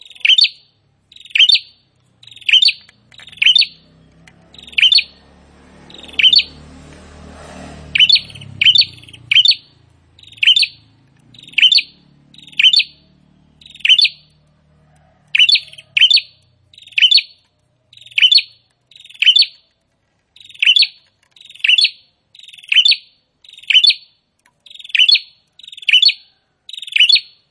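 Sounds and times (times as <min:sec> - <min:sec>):
prinia singing: 0:00.0 - 0:27.3
low rumbling background noise: 0:01.8 - 0:16.8.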